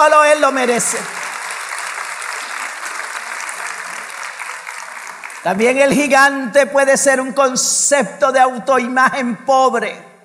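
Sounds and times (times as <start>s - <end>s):
speech: 0.0s - 1.2s, 5.4s - 10.1s
audience applause: 0.0s - 5.6s.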